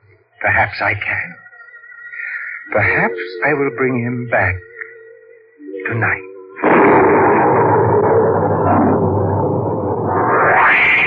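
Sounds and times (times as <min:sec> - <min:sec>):
speech: 0:00.4 - 0:01.4, 0:02.7 - 0:04.7, 0:05.8 - 0:07.2
tremendous thunderclap: 0:06.6 - 0:11.0.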